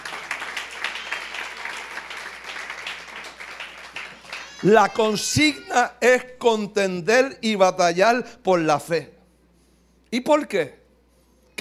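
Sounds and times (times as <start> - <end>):
audience applauding: 0.0 - 5.5
speech: 4.6 - 9.2, 10.1 - 10.8.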